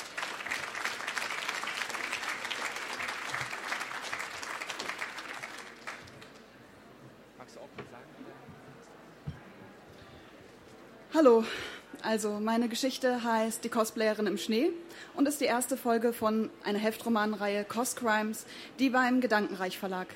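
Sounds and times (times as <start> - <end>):
audience applause: 0.0 - 6.5
speech: 11.2 - 20.1.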